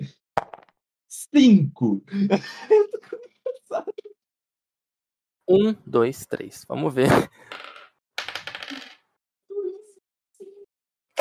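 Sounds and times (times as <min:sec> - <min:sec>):
speech: 0:01.2 - 0:03.2, 0:05.5 - 0:07.6
laughter: 0:02.1 - 0:04.2
dice rattling across a hard surface: 0:07.5 - 0:09.0.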